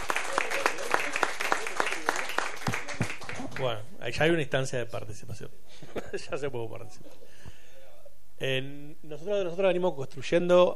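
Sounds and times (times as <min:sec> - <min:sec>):
audience applause: 0:00.0 - 0:03.8
speech: 0:03.6 - 0:07.6, 0:08.4 - 0:10.7.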